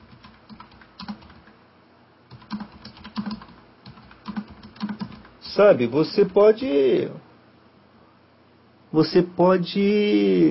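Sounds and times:
typing a note on a computer keyboard: 0:00.0 - 0:01.5, 0:02.3 - 0:05.4
speech: 0:05.5 - 0:07.2, 0:08.9 - 0:10.4.

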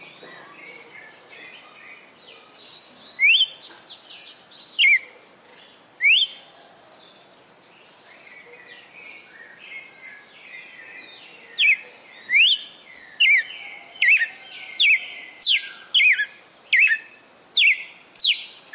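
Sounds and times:
female red-cowled cardinal singing in Fortaleza-CE: 0:03.2 - 0:05.0, 0:06.0 - 0:06.4, 0:11.6 - 0:18.7.

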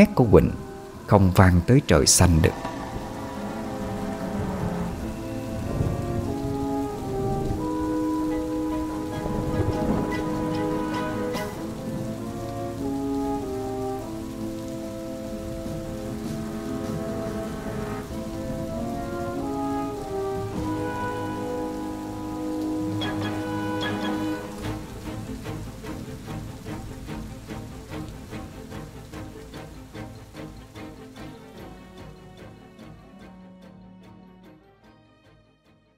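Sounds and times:
speech: 0:00.0 - 0:02.7
heavy rain: 0:00.0 - 0:34.1
thunder: 0:02.5 - 0:12.1.

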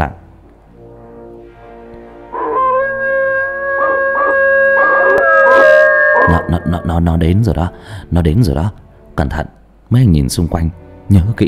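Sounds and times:
eerie drawn-out howl in a deserted cemetery: 0:02.3 - 0:07.2
speech: 0:06.5 - 0:11.4.

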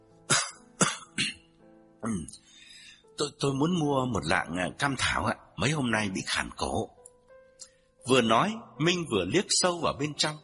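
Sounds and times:
man fake coughing at a shop counter: 0:00.3 - 0:01.4
speech: 0:02.0 - 0:02.5, 0:03.2 - 0:07.0, 0:08.0 - 0:10.4.

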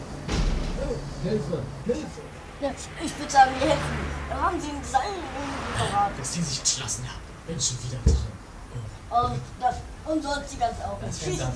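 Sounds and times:
door shut in a horror radio play: 0:00.2 - 0:01.0, 0:08.0 - 0:08.4
speech: 0:01.2 - 0:08.4, 0:09.1 - 0:11.5.

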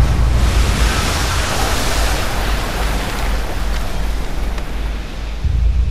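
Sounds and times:
tsunami flood wave crashing and roaring toward the coasts of Sumatra and Thailand: 0:00.0 - 0:03.7
deep rumbling undertone of the tsunami: 0:00.0 - 0:05.8.

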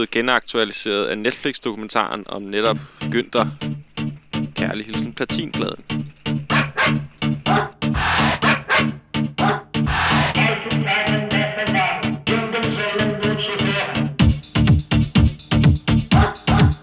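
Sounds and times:
speech: 0:00.0 - 0:03.8, 0:04.7 - 0:06.0
disco beat with sustained synth: 0:02.1 - 0:16.8
dog barks and yips in a disco song: 0:06.4 - 0:09.7, 0:16.1 - 0:16.8.

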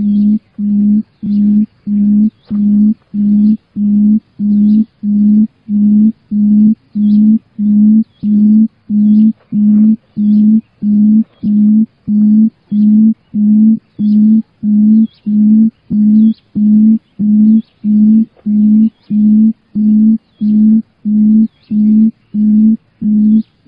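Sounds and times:
quail giving short downslurred and hooked calls: 0:00.0 - 0:23.6.

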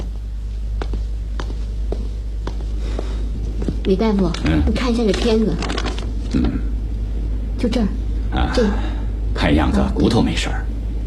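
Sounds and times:
soft footsteps of someone walking away: 0:00.0 - 0:05.4
steady low hum: 0:00.0 - 0:11.0
speech: 0:03.9 - 0:06.7, 0:07.6 - 0:10.6.

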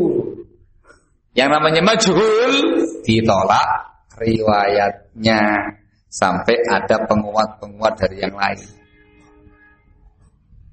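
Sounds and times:
speech: 0:01.4 - 0:08.8
train horn: 0:08.7 - 0:10.0.

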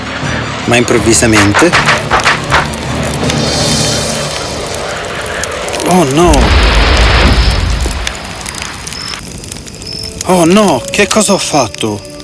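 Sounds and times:
speech: 0:00.7 - 0:02.1, 0:05.9 - 0:06.7, 0:10.3 - 0:12.1
firecrackers exploding: 0:01.5 - 0:12.2.

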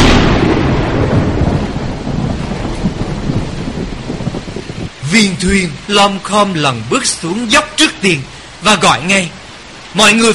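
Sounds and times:
thunder crack and rolling rumble: 0:00.0 - 0:05.9
heavy rain hissing: 0:00.0 - 0:10.3
speech: 0:05.1 - 0:09.4, 0:10.0 - 0:10.3.

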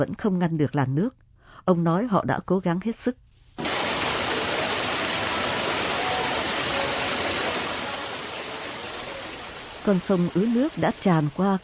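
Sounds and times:
speech: 0:00.0 - 0:03.2, 0:09.9 - 0:11.6
machines whirring at the Bang Su water pumping station: 0:03.6 - 0:11.6.

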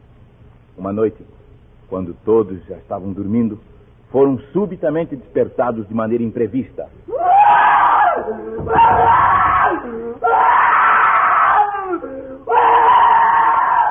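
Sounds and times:
speech: 0:00.8 - 0:07.3, 0:08.2 - 0:10.7
young man moaning: 0:07.1 - 0:13.8
young man screaming and wailing in a house's sitting room at night: 0:07.1 - 0:13.8.

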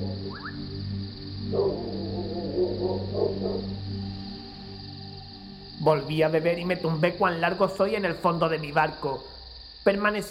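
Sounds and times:
steady low hum: 0:00.0 - 0:08.6
dog howling in the distance: 0:01.4 - 0:04.5
speech: 0:02.8 - 0:03.9, 0:05.8 - 0:10.2.

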